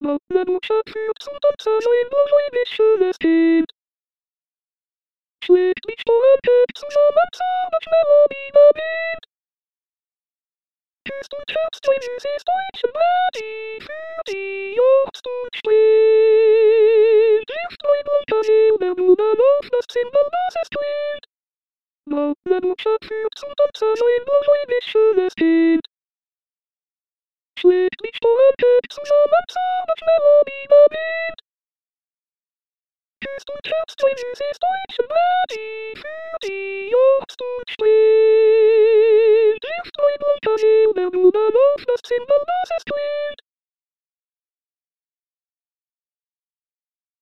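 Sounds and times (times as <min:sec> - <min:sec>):
soprano singing: 0:00.0 - 0:03.7, 0:05.5 - 0:09.3, 0:11.1 - 0:21.3, 0:22.1 - 0:25.9, 0:27.6 - 0:31.4, 0:33.2 - 0:43.4.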